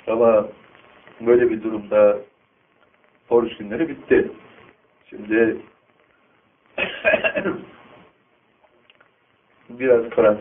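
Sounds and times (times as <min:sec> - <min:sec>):
speech: 0:00.1 - 0:00.6, 0:01.2 - 0:02.3, 0:03.3 - 0:04.5, 0:05.1 - 0:05.7, 0:06.8 - 0:07.8, 0:09.7 - 0:10.4
coughing caused by pharyngitis: 0:06.8 - 0:07.7.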